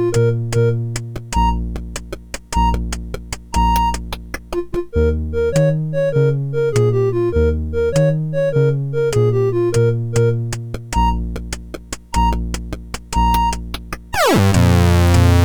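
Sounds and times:
chiptune music on MOS6581R4 sound chip: 0.0s - 15.4s.

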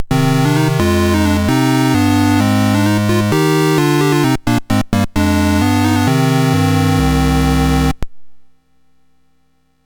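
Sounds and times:
SID MOS6581R4 chiptune music: 0.0s - 8.0s.

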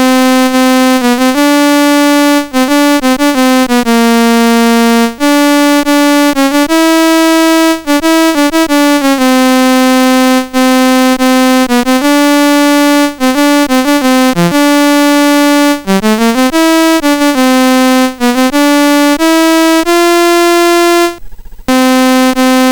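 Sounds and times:
MOS6581R4 chiptune game music: 0.0s - 22.6s.

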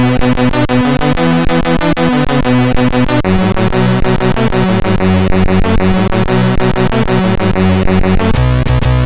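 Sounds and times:
techno music on MOS6581R4 sound chip: 0.0s - 9.0s.

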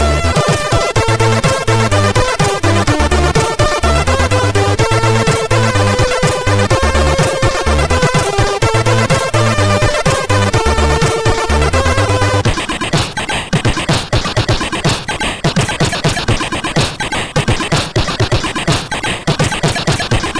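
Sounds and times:
MOS6581R4 SID chip vibration: 0.0s - 20.3s.

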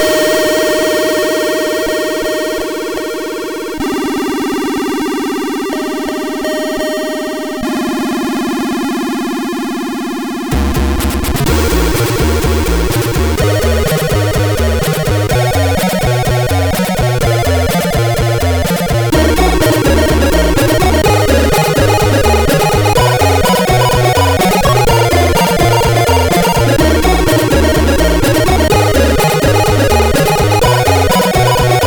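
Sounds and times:
MOS6581R4 SID chip music: 0.0s - 31.8s.

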